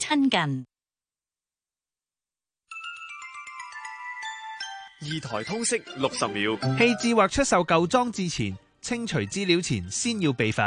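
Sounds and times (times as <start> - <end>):
speech: 0.1 - 0.7, 5.0 - 10.6
video call electronic ringtone: 2.7 - 7.3.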